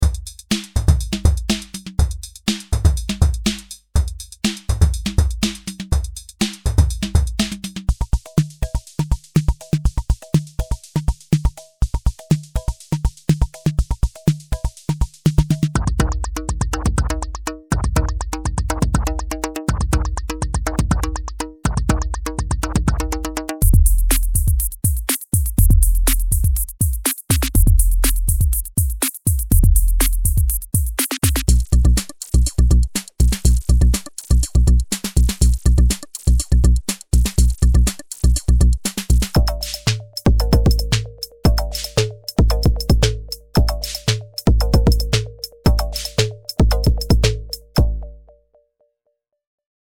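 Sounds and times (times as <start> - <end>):
drum kits: 0.0 - 48.2.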